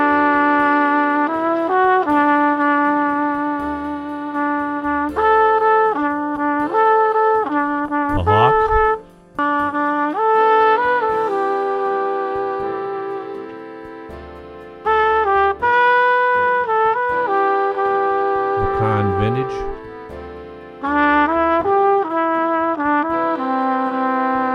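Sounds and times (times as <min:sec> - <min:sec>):
flugelhorn playing: 0:00.0 - 0:14.2, 0:14.8 - 0:24.5.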